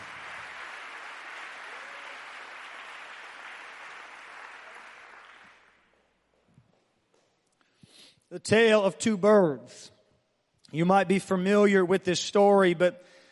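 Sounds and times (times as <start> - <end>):
audience applause: 0.0 - 5.9
speech: 8.3 - 10.0, 10.7 - 13.2.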